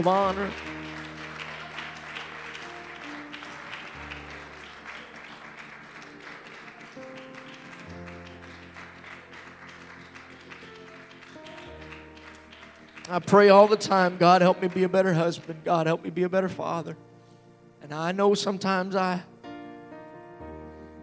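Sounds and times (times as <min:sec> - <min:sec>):
speech: 0:00.0 - 0:00.7, 0:13.1 - 0:17.1, 0:17.9 - 0:19.3
crowd applause: 0:00.0 - 0:15.6
sustained keyboard chords: 0:00.0 - 0:21.0.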